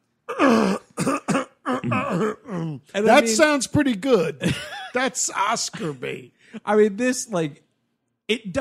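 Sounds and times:
performed coughing fit: 0.3s - 2.9s
speech: 2.2s - 7.6s, 8.3s - 8.6s.

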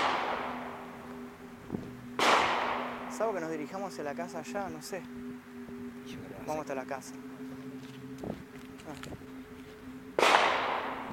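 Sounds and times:
distant gunshots: 0.0s - 0.6s, 2.2s - 3.2s, 10.2s - 11.1s
speech: 3.2s - 5.4s, 6.1s - 7.3s, 8.2s - 9.2s.

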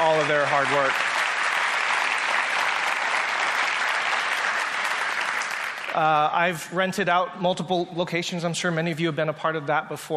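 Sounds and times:
large audience applause: 0.0s - 6.3s
speech: 0.2s - 1.1s, 6.0s - 10.1s.

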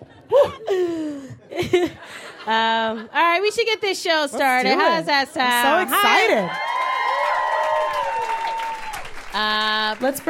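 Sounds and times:
speech: 0.4s - 6.6s, 9.3s - 10.2s
audience applause: 5.6s - 10.2s
whistles and cheering: 6.5s - 9.2s.

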